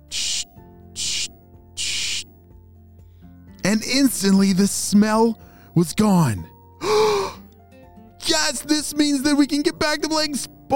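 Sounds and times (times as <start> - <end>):
spray bottle spraying Bubbleberry soap onto sports equipment: 0.0 - 2.3
speech: 3.7 - 7.0, 8.6 - 10.7.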